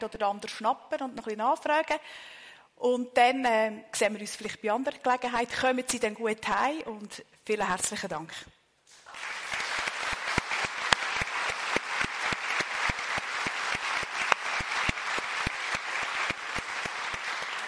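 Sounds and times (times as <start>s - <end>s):
speech: 0.0s - 8.6s
audience applause: 9.0s - 17.6s.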